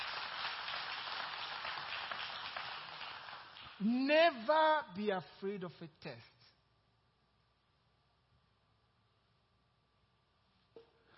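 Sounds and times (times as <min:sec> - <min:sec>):
audience clapping: 0:00.0 - 0:04.7
speech: 0:03.8 - 0:06.4.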